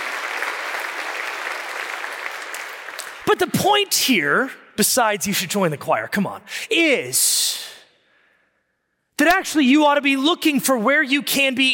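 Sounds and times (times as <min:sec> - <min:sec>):
audience applause: 0:00.0 - 0:03.3
speech: 0:03.3 - 0:07.8, 0:09.2 - 0:11.7.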